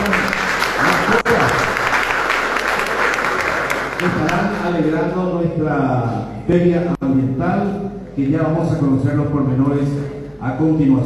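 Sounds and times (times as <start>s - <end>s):
audience applause at an environmental fair: 0.0s - 4.9s
speech: 4.7s - 11.0s.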